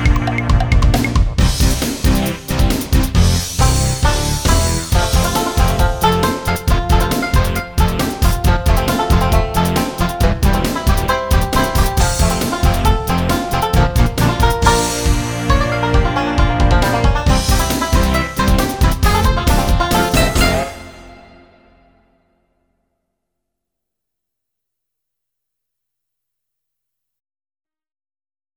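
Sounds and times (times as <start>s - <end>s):
instrumental music: 0.0s - 22.0s.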